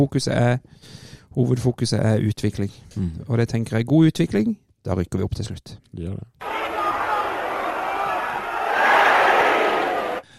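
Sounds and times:
speech: 0.0s - 6.4s
small stadium crowd cheering at Gamle Kristiansand stadion: 6.4s - 10.3s.

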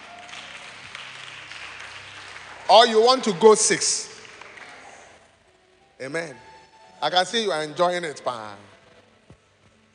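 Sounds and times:
audience clapping: 0.0s - 5.3s
speech: 2.7s - 4.1s, 6.0s - 8.7s.

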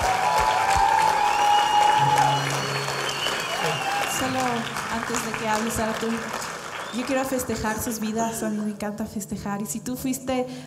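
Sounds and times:
crowd applause: 0.0s - 8.1s
speech: 5.2s - 10.6s.

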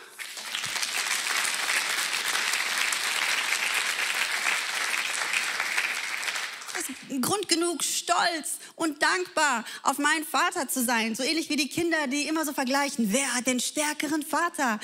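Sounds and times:
audience applause: 0.0s - 7.1s
speech: 7.1s - 14.8s.

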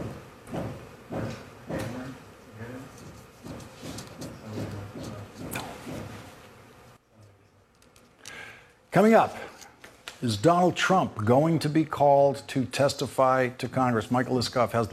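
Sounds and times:
hammering: 0.0s - 2.2s, 3.0s - 6.3s
speech: 9.0s - 9.4s, 10.2s - 14.9s.

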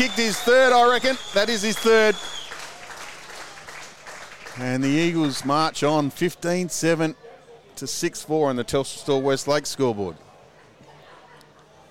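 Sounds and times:
speech: 0.0s - 2.4s, 4.6s - 7.2s, 7.8s - 10.2s
stadium crowd cheering: 0.0s - 6.2s.

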